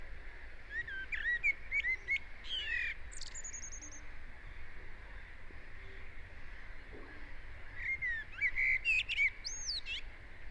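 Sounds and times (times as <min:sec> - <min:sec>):
common blackbird singing: 0:00.7 - 0:04.0, 0:07.8 - 0:10.0.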